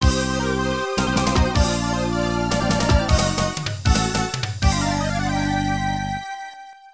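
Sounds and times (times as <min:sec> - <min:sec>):
stage start sound: 0:00.0 - 0:06.2.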